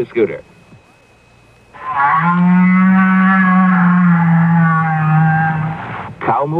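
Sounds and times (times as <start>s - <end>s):
whale call, long low moan: 1.8s - 6.1s.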